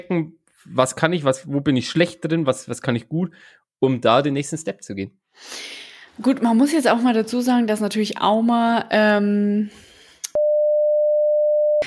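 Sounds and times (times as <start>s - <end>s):
speech: 0.0s - 9.9s
censor bleep tone: 10.4s - 11.8s.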